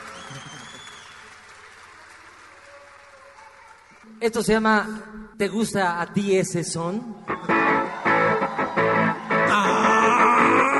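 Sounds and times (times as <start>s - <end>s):
audience applause: 0.0s - 4.3s, 7.2s - 10.7s
speech: 4.2s - 7.9s.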